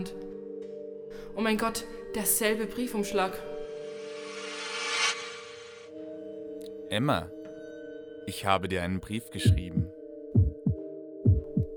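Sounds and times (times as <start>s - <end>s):
speech: 1.4s - 3.5s, 6.9s - 7.4s, 8.2s - 10.4s
pounding heartbeat: 10.4s - 11.7s.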